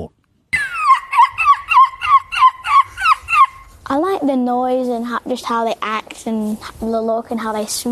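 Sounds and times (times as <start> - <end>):
boy imitating seagull screech: 0.6 - 3.7
speech: 4.2 - 7.9.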